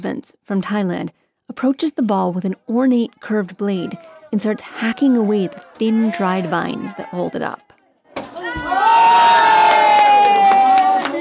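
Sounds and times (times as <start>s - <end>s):
speech: 0.0s - 7.7s
crowd cheering as ball drops: 3.7s - 11.1s
long held whoop: 8.7s - 11.1s.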